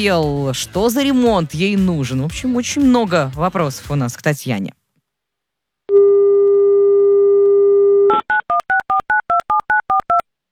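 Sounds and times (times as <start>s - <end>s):
speech: 0.0s - 4.8s
telephone dial tone: 5.9s - 10.2s.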